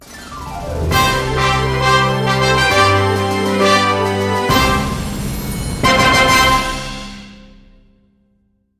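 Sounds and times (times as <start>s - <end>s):
fanfare: 0.1s - 7.6s.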